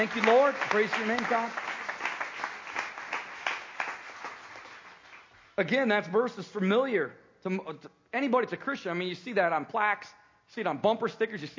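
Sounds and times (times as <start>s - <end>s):
speech: 0.0s - 1.6s, 5.6s - 11.5s
audience clapping: 0.0s - 5.4s.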